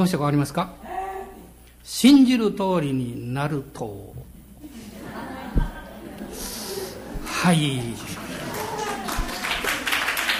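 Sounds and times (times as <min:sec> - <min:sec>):
speech: 0:00.0 - 0:00.8, 0:01.8 - 0:04.8, 0:07.4 - 0:08.2
laughter: 0:04.6 - 0:10.3
audience clapping: 0:07.0 - 0:10.3.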